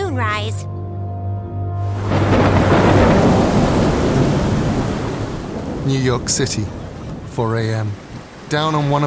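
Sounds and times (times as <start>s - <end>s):
speech: 0.2s - 0.7s, 5.9s - 6.8s, 7.4s - 9.0s
waves crashing in from the East River: 1.9s - 9.0s.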